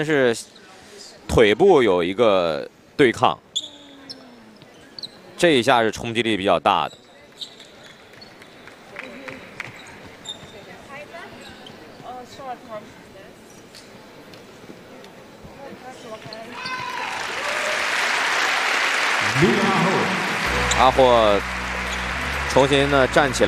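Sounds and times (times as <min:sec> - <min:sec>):
speech: 0:00.0 - 0:00.6, 0:01.3 - 0:03.4, 0:05.4 - 0:07.5, 0:20.8 - 0:21.6, 0:22.6 - 0:23.4
arena crowd applause: 0:17.0 - 0:23.4
commentator speaking: 0:19.2 - 0:21.5, 0:22.5 - 0:23.4
arena crowd murmur: 0:19.2 - 0:23.4.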